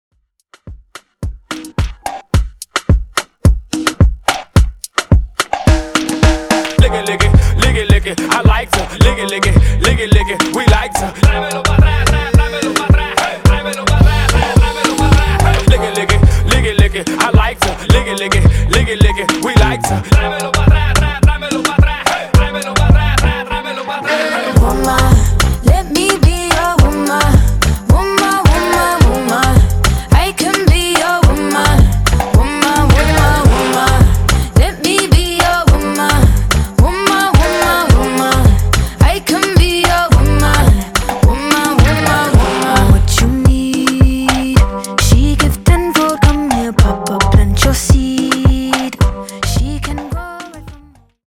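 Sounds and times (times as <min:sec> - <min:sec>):
Redrum drum machine beat: 0:00.4 - 0:23.3, 0:24.6 - 0:50.8.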